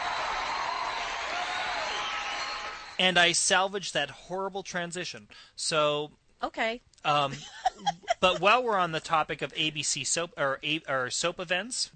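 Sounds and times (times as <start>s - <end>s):
crowd applause: 0.0s - 3.0s
speech: 3.0s - 11.9s
laughter: 7.2s - 8.8s.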